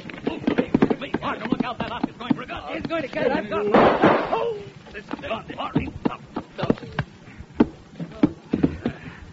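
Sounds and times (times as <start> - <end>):
people talking: 0.2 - 7.1
gunshots in a radio drama: 3.7 - 4.4.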